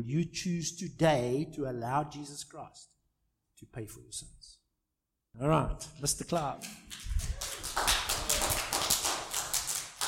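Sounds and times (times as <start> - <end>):
speech: 0.0 - 3.0, 3.6 - 4.6, 5.4 - 7.4
audience clapping: 6.4 - 10.0.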